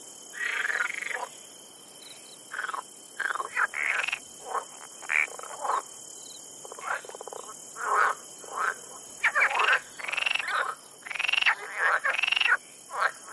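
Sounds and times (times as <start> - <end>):
Rana arboricola frogs croaking: 0.0 - 13.3.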